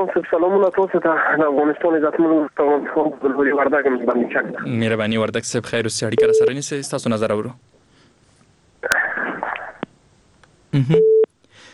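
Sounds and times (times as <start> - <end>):
speech: 0.0 - 7.7, 10.7 - 11.1
telephone busy signal after a caller's line drops: 6.2 - 6.5, 11.0 - 11.3.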